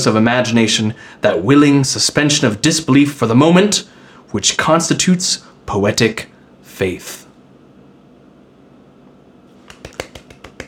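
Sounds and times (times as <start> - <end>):
speech: 0.0 - 7.2
hands clapping: 9.6 - 10.6.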